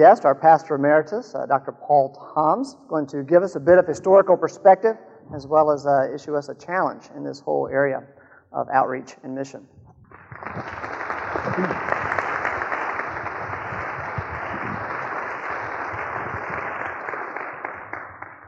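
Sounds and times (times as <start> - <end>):
speech: 0.0 - 9.8, 10.4 - 10.9
audience applauding: 10.1 - 18.4.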